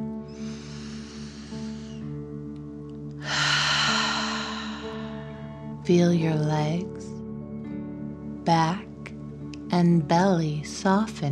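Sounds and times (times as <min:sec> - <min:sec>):
soft sustained musical drone: 0:00.0 - 0:11.3
deep breathing in imitation of a fire-breathing dragon: 0:00.2 - 0:02.2, 0:03.2 - 0:05.8
speech: 0:05.9 - 0:07.1, 0:08.5 - 0:08.8, 0:09.7 - 0:11.3.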